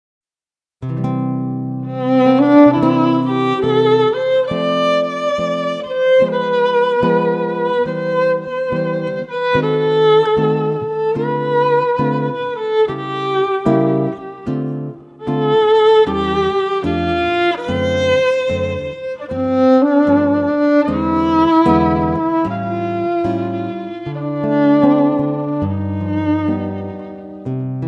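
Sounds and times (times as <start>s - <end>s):
guitar: 0.8s - 27.8s
violin: 1.1s - 27.8s.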